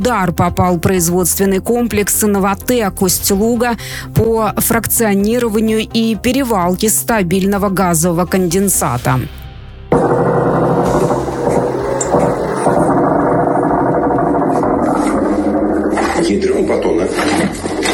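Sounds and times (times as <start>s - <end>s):
speech: 0.0s - 9.4s
attack drones buzzing overhead: 9.9s - 16.9s.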